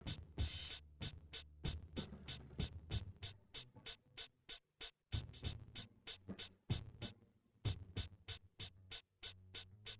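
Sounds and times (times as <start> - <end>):
instrumental with drums: 0.0 - 9.9.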